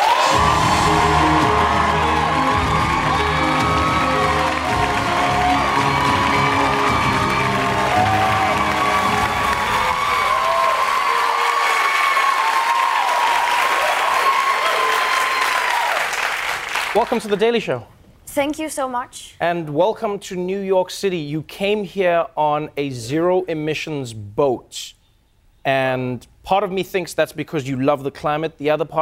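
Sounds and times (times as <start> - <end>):
studio audience at The Daily Show cheering and applauding: 0.0 - 17.4
speech: 17.0 - 25.0, 25.6 - 29.0.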